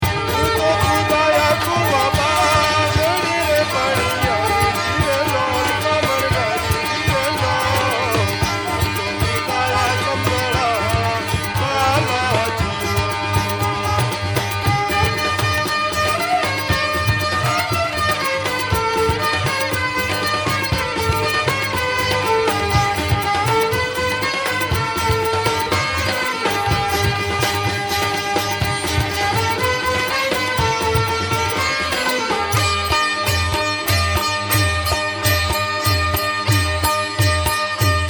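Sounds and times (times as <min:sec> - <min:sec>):
banjo: 0:00.0 - 0:38.0.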